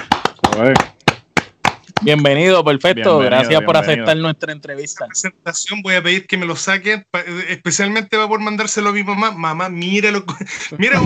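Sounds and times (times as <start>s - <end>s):
sharp hand claps: 0.0s - 2.3s
speech: 0.6s - 0.9s, 2.0s - 11.0s
laughter: 10.2s - 11.0s.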